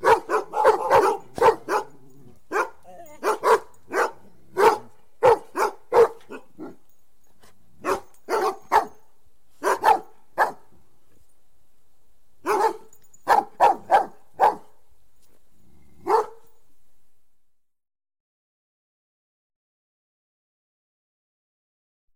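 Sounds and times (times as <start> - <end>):
Doberman barking: 0.0 - 6.8, 7.8 - 9.0, 9.6 - 10.7, 12.4 - 14.8, 16.0 - 16.5.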